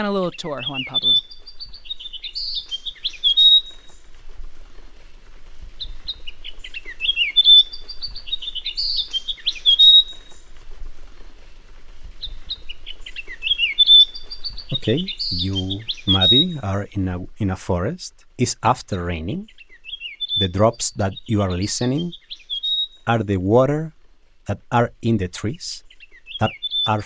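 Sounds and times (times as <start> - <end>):
speech: 0.0 - 1.4, 14.8 - 19.6, 20.4 - 22.2, 23.1 - 27.0
Myiothlypis coronata warbler pair singing: 0.0 - 3.9, 6.6 - 10.4, 13.1 - 23.9, 24.5 - 27.0.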